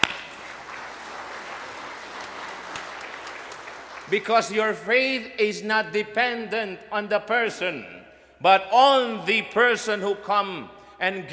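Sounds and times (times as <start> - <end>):
crowd clapping: 0.0 - 4.6
speech: 4.1 - 11.3.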